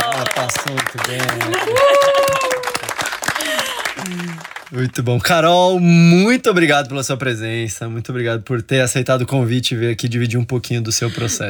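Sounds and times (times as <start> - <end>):
audience applause: 0.0 - 4.8
speech: 0.4 - 11.4.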